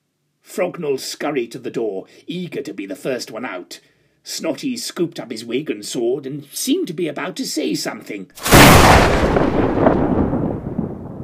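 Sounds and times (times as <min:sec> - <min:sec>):
speech: 0:00.6 - 0:10.0
loud clap of thunder: 0:08.4 - 0:11.2.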